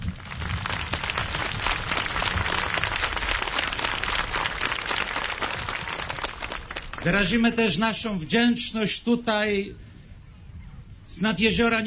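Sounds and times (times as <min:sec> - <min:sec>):
applause: 0:00.0 - 0:07.6
speech: 0:07.0 - 0:09.8, 0:11.1 - 0:11.8.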